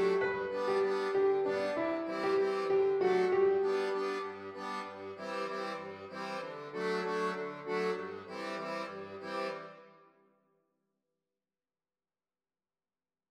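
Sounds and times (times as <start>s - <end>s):
accordion: 0.0s - 10.2s.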